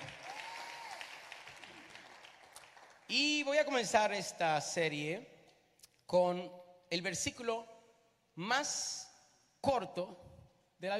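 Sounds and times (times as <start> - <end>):
audience applauding: 0.0 - 3.1
speech: 3.1 - 5.3, 6.1 - 7.7, 8.4 - 10.9.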